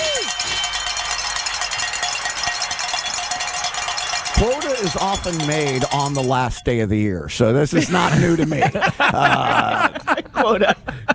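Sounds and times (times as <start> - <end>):
bells being rung in celebration: 0.0 - 6.8
speech: 4.8 - 11.1
laughter: 7.7 - 11.1.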